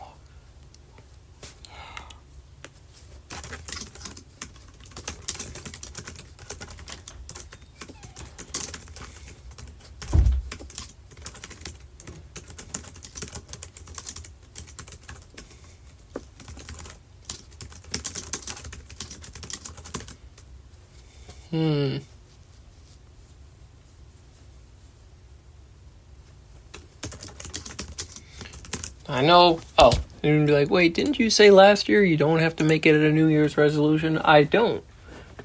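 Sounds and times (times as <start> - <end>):
typing a list of New Year's goals on a computer keyboard: 3.3 - 15.5, 16.1 - 20.5, 26.7 - 29.0
speech: 21.6 - 22.1, 29.1 - 35.4.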